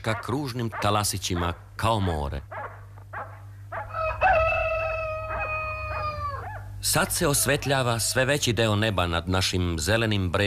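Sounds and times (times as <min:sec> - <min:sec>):
speech: 0:00.0 - 0:02.6, 0:06.8 - 0:10.4
rooster crowing: 0:03.7 - 0:08.4.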